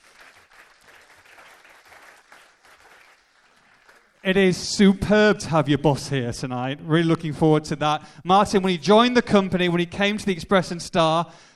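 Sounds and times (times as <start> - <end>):
crowd applause: 0.0 - 4.4
speech: 4.2 - 11.5.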